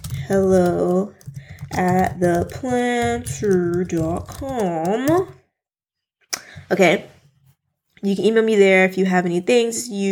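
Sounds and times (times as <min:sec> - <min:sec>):
computer keyboard typing an email address: 0:00.0 - 0:05.4
speech: 0:00.3 - 0:05.4, 0:06.7 - 0:07.1, 0:08.0 - 0:10.0.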